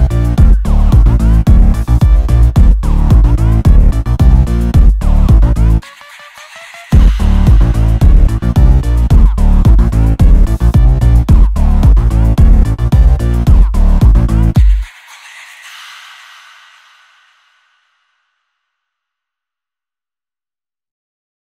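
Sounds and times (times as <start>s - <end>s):
boosted bass: 0.0s - 5.8s, 6.9s - 14.8s.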